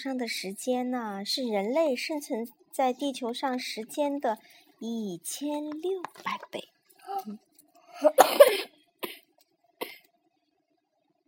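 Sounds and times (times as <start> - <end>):
speech: 0.0 - 8.7
person coughing: 8.0 - 9.2, 9.8 - 10.0.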